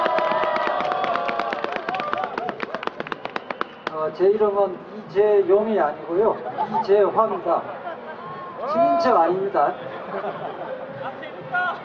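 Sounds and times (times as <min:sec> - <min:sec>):
audience applause welcoming the guest: 0:00.0 - 0:03.9
speech: 0:04.1 - 0:07.8, 0:08.7 - 0:10.8
laughter: 0:06.3 - 0:08.5, 0:09.7 - 0:11.6.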